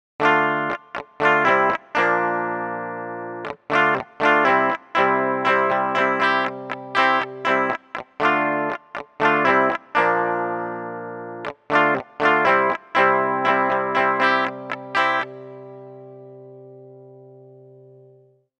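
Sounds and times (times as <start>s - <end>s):
guitarist playing: 0.2s - 18.3s.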